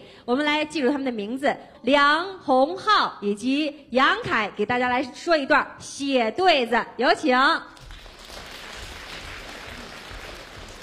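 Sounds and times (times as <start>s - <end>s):
speech: 0.3s - 7.8s
audience applause: 7.8s - 10.8s.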